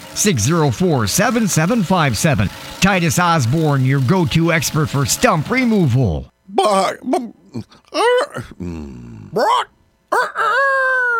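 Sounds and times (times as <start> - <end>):
speech: 0.2 - 11.1
rooster crowing: 9.4 - 11.1.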